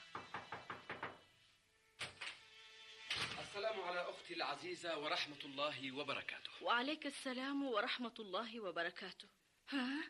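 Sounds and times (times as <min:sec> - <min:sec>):
knocking on a door: 0:00.0 - 0:01.3
speech: 0:03.5 - 0:10.0.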